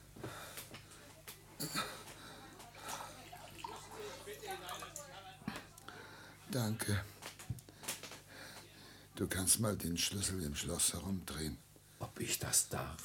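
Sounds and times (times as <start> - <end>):
faint breathing: 0.0 - 1.2, 1.8 - 4.3, 5.4 - 6.5, 7.1 - 9.2
low constant hum: 0.0 - 13.0
speech: 1.6 - 2.0, 6.5 - 7.1, 9.2 - 13.0
water pouring into a glass: 2.7 - 5.1.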